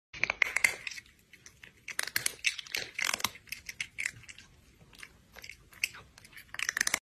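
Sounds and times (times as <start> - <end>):
cat crunching: 0.2 - 7.0.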